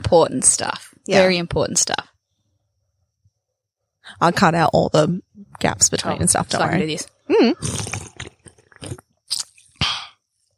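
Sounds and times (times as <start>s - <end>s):
speech: 0.1s - 2.1s, 4.1s - 8.1s
bubbles: 7.5s - 9.8s.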